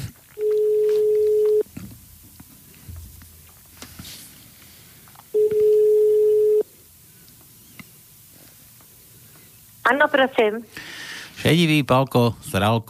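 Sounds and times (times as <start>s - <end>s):
quiet telephone line noise: 0.0s - 10.7s
telephone line ringing tones while calling the fortune teller Elza: 0.4s - 1.6s, 5.3s - 6.7s
speech: 9.9s - 12.8s.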